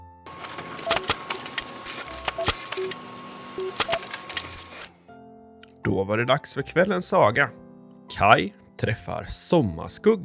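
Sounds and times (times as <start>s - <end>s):
printer printing out a story: 0.3s - 5.0s
speech: 5.9s - 10.2s.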